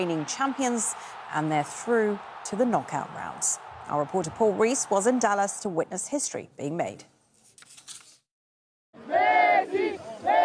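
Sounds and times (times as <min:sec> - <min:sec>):
stadium crowd of football fans cheering: 0:00.0 - 0:06.3, 0:09.0 - 0:10.4
speech: 0:00.0 - 0:07.1.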